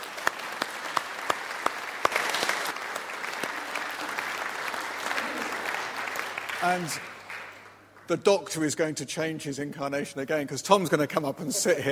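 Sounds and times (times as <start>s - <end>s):
audience applause: 0.0s - 8.1s
speech: 6.6s - 7.1s, 8.1s - 11.8s.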